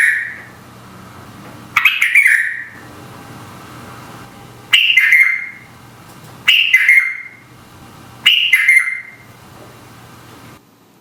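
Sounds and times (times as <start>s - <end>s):
red-vented bulbul calling: 0.0s - 0.7s, 1.7s - 3.0s, 4.6s - 10.0s.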